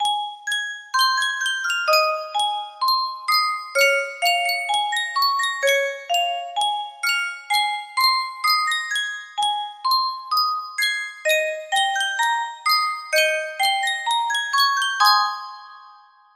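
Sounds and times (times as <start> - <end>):
Yunsheng custom tune music box: 0.0 - 16.3.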